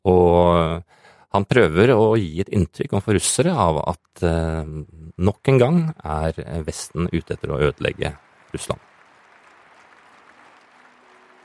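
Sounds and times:
speech: 1.3s - 8.9s
audience applause in an arena: 5.2s - 11.4s.

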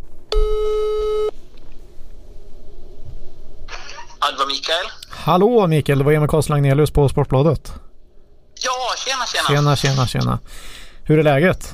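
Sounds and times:
telephone ringing tone: 0.3s - 1.3s
speech: 4.3s - 7.8s, 8.6s - 11.7s.

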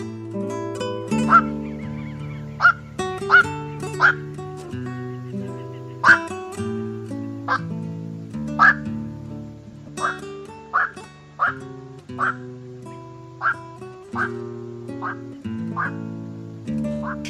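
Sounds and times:
soft musical backing: 0.0s - 17.2s
night heron croaking kwok calls: 1.1s - 6.4s, 7.5s - 7.7s, 8.6s - 8.9s, 10.0s - 12.5s, 13.4s - 16.0s, 17.0s - 17.2s.

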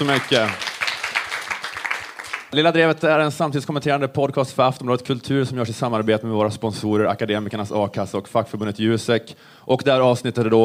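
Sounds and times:
speech: 0.0s - 0.6s, 2.5s - 10.6s
audience applause: 0.0s - 2.6s.

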